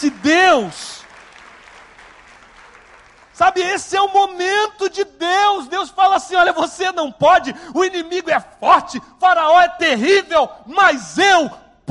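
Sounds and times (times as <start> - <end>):
speech: 0.0 - 0.9, 3.4 - 11.8
audience applauding: 0.0 - 3.8.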